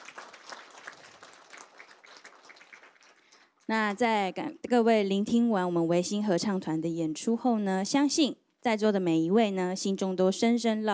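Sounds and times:
audience applause: 0.0 - 3.5
speech: 3.7 - 10.9.

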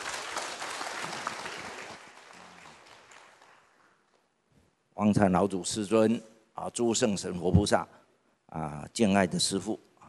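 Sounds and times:
audience applause: 0.0 - 4.0
speech: 5.0 - 9.9.

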